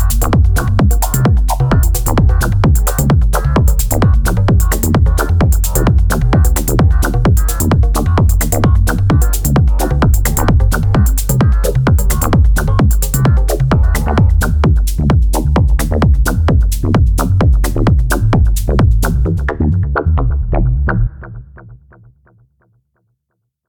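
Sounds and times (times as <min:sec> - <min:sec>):
drum machine with EQ and compression: 0:00.0 - 0:20.9.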